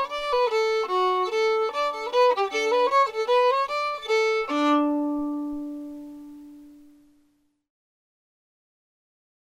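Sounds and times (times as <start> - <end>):
fiddle playing a hornpipe: 0.0 - 6.4.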